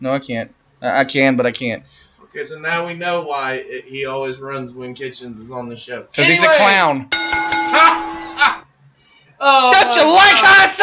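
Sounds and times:
speech: 0:00.0 - 0:08.3, 0:09.4 - 0:10.8
signal or alarm bell ringing: 0:07.1 - 0:08.6.

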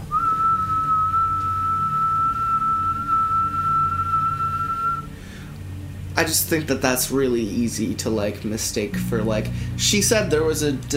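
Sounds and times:
low rumble: 0:00.0 - 0:10.9
person whistling a long steady note: 0:00.1 - 0:05.2
speech: 0:06.2 - 0:10.9.

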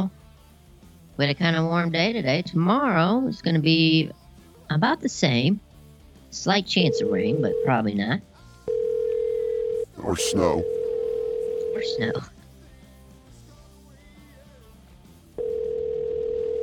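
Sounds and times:
speech: 0:01.2 - 0:05.6, 0:06.3 - 0:08.3, 0:10.0 - 0:10.8, 0:11.8 - 0:12.3
steady loud low-mid telephone dial tone: 0:06.9 - 0:07.8, 0:08.7 - 0:09.9, 0:10.6 - 0:12.2, 0:15.4 - 0:16.6.

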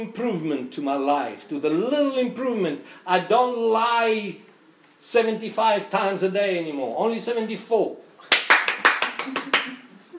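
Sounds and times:
speech: 0:00.0 - 0:08.4
hands clapping: 0:08.2 - 0:09.9.

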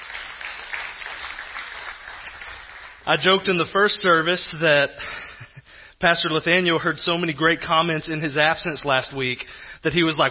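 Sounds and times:
crowd clapping: 0:00.0 - 0:03.4
speech: 0:03.1 - 0:05.3, 0:06.0 - 0:10.2.

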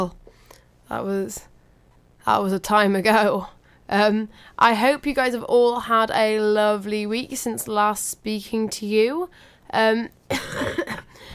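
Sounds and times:
speech: 0:00.0 - 0:00.2, 0:00.9 - 0:01.5, 0:02.2 - 0:11.3
person coughing: 0:10.3 - 0:11.3.

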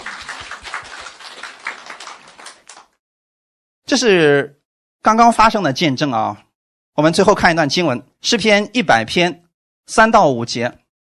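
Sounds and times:
audience applause: 0:00.0 - 0:03.0
speech: 0:03.9 - 0:06.4, 0:07.0 - 0:10.8.

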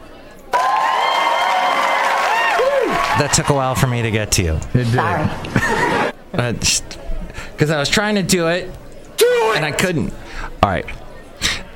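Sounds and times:
applause: 0:00.5 - 0:03.6
speech: 0:03.2 - 0:08.8, 0:09.5 - 0:11.0
laughter: 0:04.9 - 0:06.2.

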